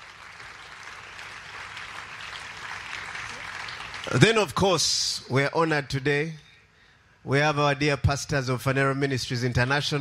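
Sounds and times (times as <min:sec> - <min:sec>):
audience clapping: 0:00.0 - 0:04.8
speech: 0:04.1 - 0:06.4, 0:07.2 - 0:09.9.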